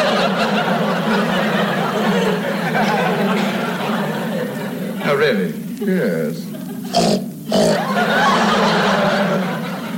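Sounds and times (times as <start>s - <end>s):
laughter: 0.0s - 9.9s
speech: 5.2s - 7.2s
voice imitating a pig: 6.9s - 7.8s.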